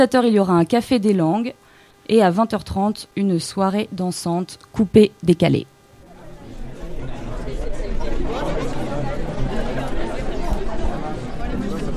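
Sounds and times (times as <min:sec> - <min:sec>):
speech: 0:00.0 - 0:05.7
morning babble of voices at the Feltin market: 0:06.0 - 0:11.9.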